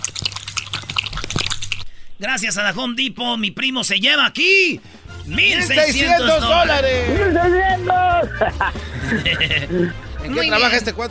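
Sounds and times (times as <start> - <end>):
dog lapping drinking water: 0.0 - 1.9
speech: 2.2 - 11.0
laughter: 6.0 - 10.8.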